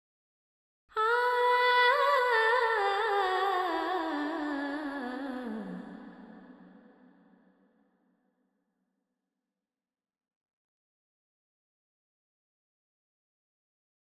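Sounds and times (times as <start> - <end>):
female vocals: 0.9 - 7.2.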